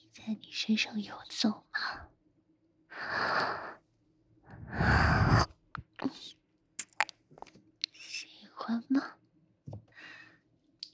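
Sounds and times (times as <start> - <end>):
speech: 0.2 - 1.9
person breathing: 2.9 - 3.8, 4.5 - 5.5, 9.9 - 10.5.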